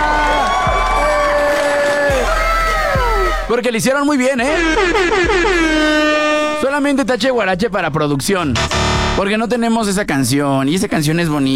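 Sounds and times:
audience applause and cheering: 0.0 - 3.5
speech: 3.5 - 11.5.

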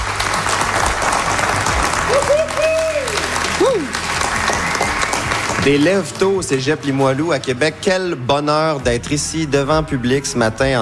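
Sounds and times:
audience applause: 0.0 - 6.4
speech: 5.6 - 10.8.

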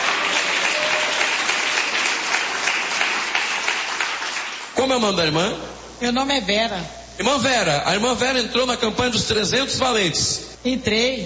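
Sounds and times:
audience clapping hands loudly: 0.0 - 4.8
speech: 4.8 - 11.2.

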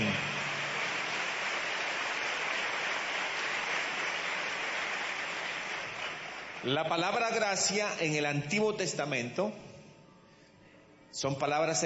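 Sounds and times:
applause: 0.0 - 7.4
speech: 6.6 - 9.7, 11.2 - 11.8.

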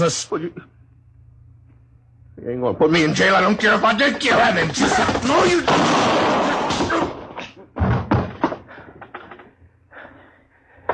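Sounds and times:
speech: 0.0 - 0.8, 2.4 - 7.2
gun going off into the floor during a struggle: 5.0 - 7.3
dull thuds and knocks during a struggle: 7.6 - 9.4.

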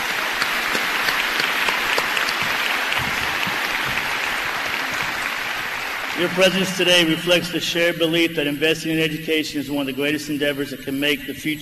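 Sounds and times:
audience applause: 0.0 - 7.4
speech: 6.2 - 11.6.

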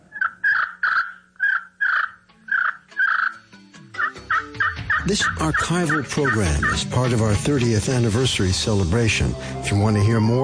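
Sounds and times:
slate turkey call with wooden striker on stone or slate: 0.1 - 3.4, 4.0 - 6.8
speech: 5.0 - 10.4.

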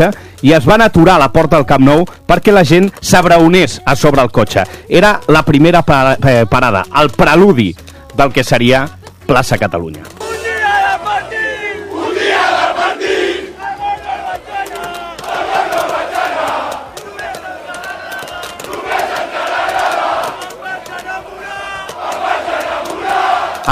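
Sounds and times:
speech: 0.0 - 11.4
football fans celebrating and chanting in square: 10.1 - 23.7
football fans shouting and cheering: 10.2 - 23.7.

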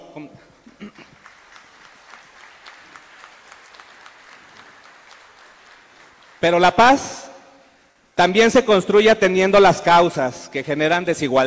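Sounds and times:
speech: 0.2 - 1.2, 6.4 - 7.2, 8.2 - 11.4
audience applause: 0.8 - 6.6.

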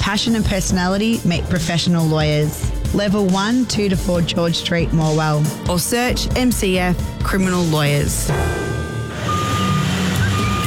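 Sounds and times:
speech: 0.1 - 8.6
reversing beeps: 8.3 - 10.6
removal truck pulling up: 8.7 - 10.6.

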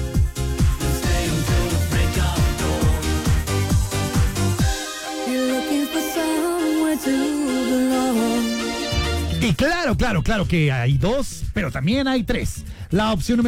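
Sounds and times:
1990s Eurodance pop track: 0.0 - 9.4
speech: 10.1 - 13.4.

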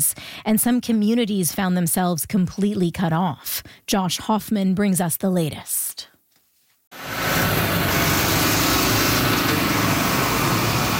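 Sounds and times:
speech: 0.0 - 5.8
bulldozers repairing damaged roadways: 7.0 - 10.9
dump trucks repairing damaged roadways: 7.0 - 10.9.

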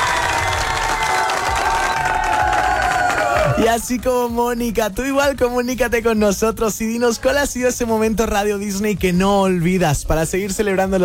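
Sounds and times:
applause: 0.0 - 4.1
speech: 3.6 - 11.0.

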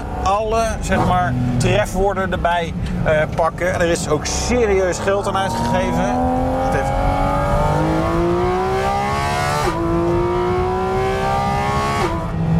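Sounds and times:
Porsche sports car engine revving high through the gears: 0.0 - 12.5
speech: 0.3 - 6.9.

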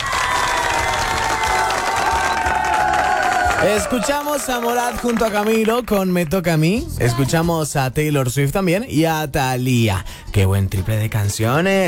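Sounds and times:
studio audience applause: 0.0 - 6.1
speech: 3.6 - 11.8.

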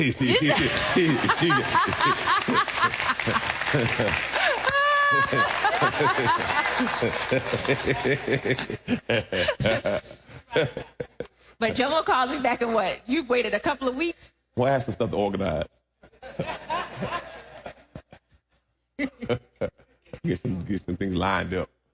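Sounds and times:
speech: 0.0 - 4.3, 5.1 - 10.9, 11.6 - 17.3, 19.0 - 21.8
laughter: 0.0 - 12.8, 16.1 - 18.4, 19.0 - 20.4
audience clapping: 0.6 - 8.9.

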